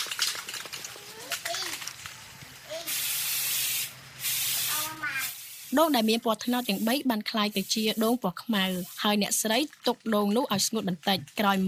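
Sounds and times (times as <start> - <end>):
black spray paint hissing from an aerosol can onto stalks: 2.7 - 9.4
speech: 5.7 - 11.6.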